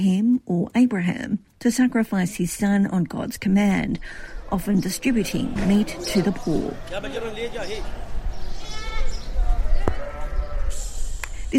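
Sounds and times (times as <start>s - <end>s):
speech: 0.0s - 8.0s
murmuring voices: 3.4s - 11.2s
sheep bleating at a livestock market: 9.8s - 10.7s.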